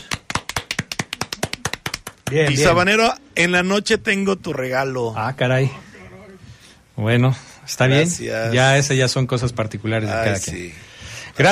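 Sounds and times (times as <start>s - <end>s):
applause: 0.0s - 2.7s
speech: 2.3s - 5.8s, 7.0s - 11.5s.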